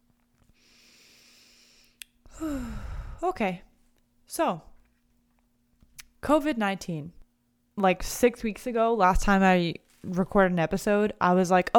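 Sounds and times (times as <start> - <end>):
deep breath: 0.6 - 3.3
speech: 2.4 - 3.7, 4.3 - 4.7, 6.2 - 7.2, 7.8 - 11.7.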